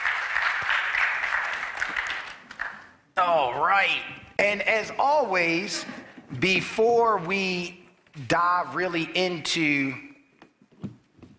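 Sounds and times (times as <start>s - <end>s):
audience applause: 0.0s - 3.0s
speech: 3.2s - 10.1s.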